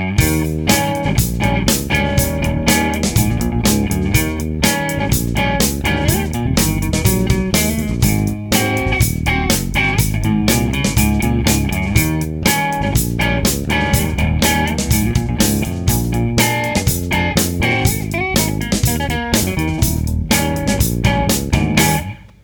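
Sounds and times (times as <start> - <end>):
nursery rhyme melody: 0.2 - 22.1.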